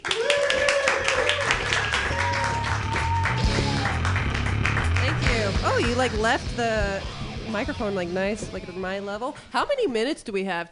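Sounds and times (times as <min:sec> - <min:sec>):
audience clapping for comedian: 0:00.0 - 0:06.4
speech: 0:06.0 - 0:10.7.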